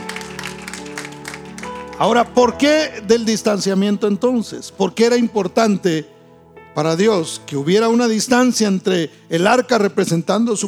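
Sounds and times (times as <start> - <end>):
audience applause: 0.0 - 3.3
speech: 2.0 - 6.1, 6.8 - 10.6.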